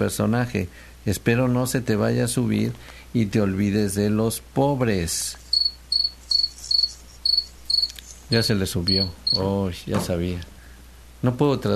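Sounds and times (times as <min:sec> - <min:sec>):
speech: 0:00.0 - 0:05.4, 0:08.3 - 0:10.6, 0:11.2 - 0:11.7
cricket chirping: 0:05.5 - 0:09.5.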